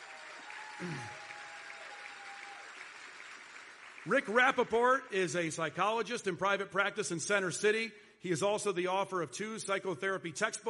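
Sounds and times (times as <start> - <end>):
faint audience applause greeting a judge of a final audition show: 0.0 - 5.5
speech: 0.8 - 1.2, 4.0 - 10.6.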